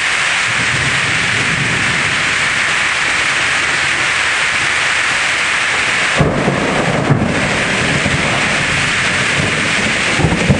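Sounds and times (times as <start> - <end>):
heavy thunderstorm: 0.1 - 10.5.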